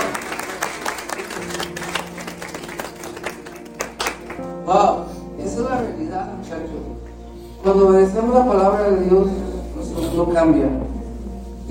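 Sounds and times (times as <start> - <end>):
audience applause: 0.0 - 4.5
speech: 4.7 - 5.1, 7.6 - 9.4, 10.2 - 10.8.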